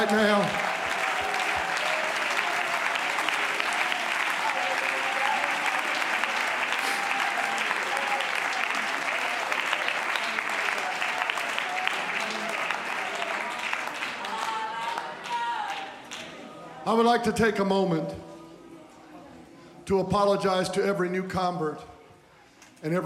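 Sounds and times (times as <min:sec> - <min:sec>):
audience clapping hands: 0:00.0 - 0:16.4
speech: 0:16.9 - 0:18.3, 0:19.9 - 0:21.9, 0:22.8 - 0:23.0.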